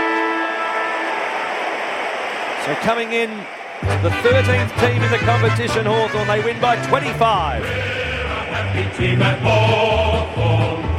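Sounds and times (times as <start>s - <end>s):
final siren at football match: 0.0s - 5.5s
speech: 2.6s - 8.0s, 8.6s - 10.7s.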